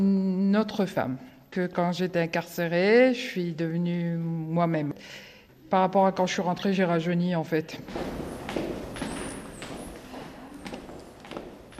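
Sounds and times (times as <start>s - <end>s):
speech: 0.0s - 8.6s
footsteps going down the stairs of the women's prison in Rennes: 7.8s - 11.7s.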